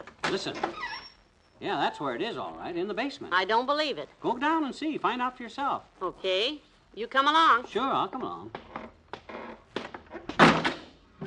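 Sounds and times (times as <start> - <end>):
speech: 0.3 - 1.0, 1.6 - 8.6
basement door with faulty latch slamming shut: 10.3 - 11.2.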